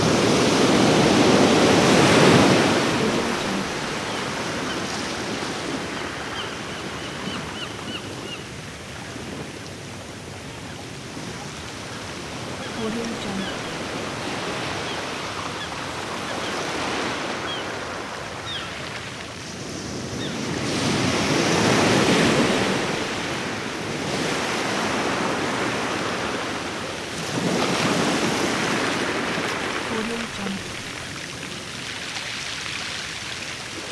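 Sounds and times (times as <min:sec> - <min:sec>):
sea waves: 0:00.0 - 0:33.9
seagulls calling: 0:02.1 - 0:09.2, 0:12.0 - 0:17.8, 0:29.2 - 0:31.3.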